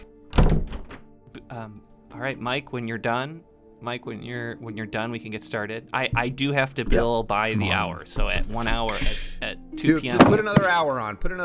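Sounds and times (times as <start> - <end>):
speech: 1.5 - 11.4
flipped chair landing on floor: 10.2 - 10.7.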